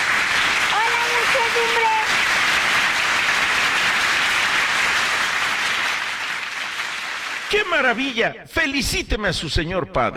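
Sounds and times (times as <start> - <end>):
audience applause: 0.0 - 8.0
speech: 7.5 - 10.1.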